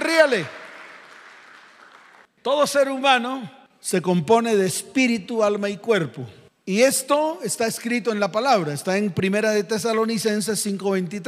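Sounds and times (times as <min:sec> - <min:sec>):
audience applause: 0:00.0 - 0:02.3
speech: 0:00.2 - 0:00.6, 0:02.4 - 0:11.2.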